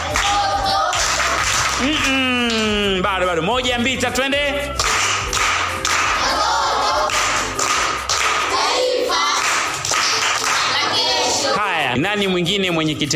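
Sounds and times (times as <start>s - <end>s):
group clapping hands in applause during a family riddle game: 0.0s - 3.0s, 4.6s - 11.6s
speech: 1.8s - 4.8s, 12.0s - 13.1s.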